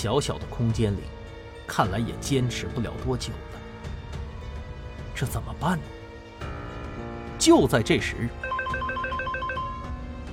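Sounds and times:
speech: 0:00.0 - 0:03.6, 0:05.2 - 0:06.0, 0:07.4 - 0:08.5
mobile phone ringing: 0:08.4 - 0:10.1.

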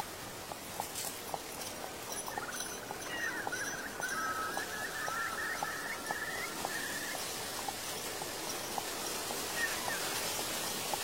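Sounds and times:
horse hooves clopping: 0:00.0 - 0:11.0
soft rustle and hiss: 0:00.0 - 0:11.0
thin wavering tone: 0:02.1 - 0:07.3.

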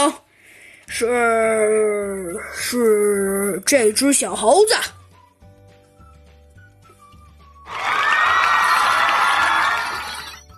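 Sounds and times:
speech: 0:00.0 - 0:00.2, 0:00.9 - 0:05.0
audience applause: 0:07.7 - 0:10.4.

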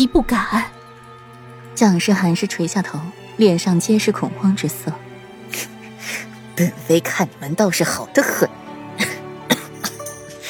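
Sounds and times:
speech: 0:00.0 - 0:00.7, 0:01.8 - 0:05.7, 0:06.6 - 0:08.6
elderly woman coughing heavily: 0:08.2 - 0:10.4.

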